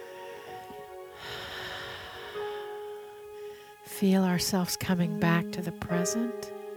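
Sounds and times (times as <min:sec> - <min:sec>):
slow deep inhale during a guided meditation: 0:00.0 - 0:03.8
speech: 0:04.0 - 0:06.6.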